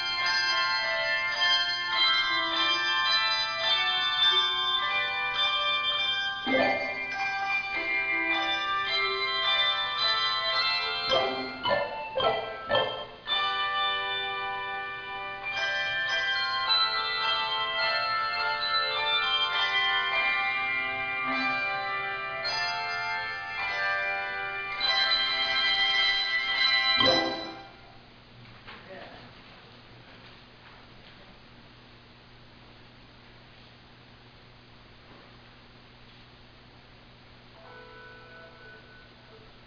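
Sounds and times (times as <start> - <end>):
handbells playing a suite: 0.0 - 27.9.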